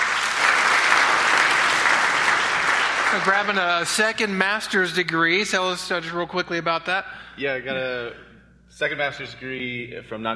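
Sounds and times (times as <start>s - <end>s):
audience clapping for graduate: 0.0s - 4.6s
speech: 3.1s - 10.3s.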